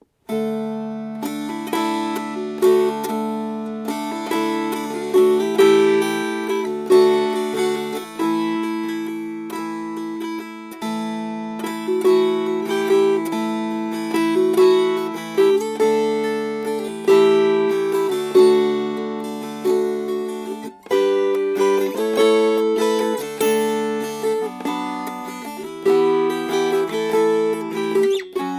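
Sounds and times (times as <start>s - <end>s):
strummed strings: 0.0s - 28.5s.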